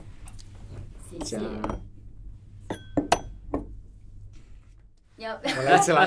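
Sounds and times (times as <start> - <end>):
speech: 1.2 - 1.9, 5.2 - 6.0
coffee tasting glass clinking: 1.2 - 2.0, 2.6 - 3.8.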